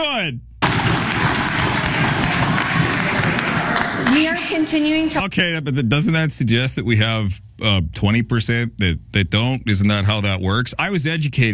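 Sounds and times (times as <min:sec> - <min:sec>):
speech: 0:00.0 - 0:00.5, 0:03.7 - 0:11.5
people clapping: 0:00.6 - 0:05.2.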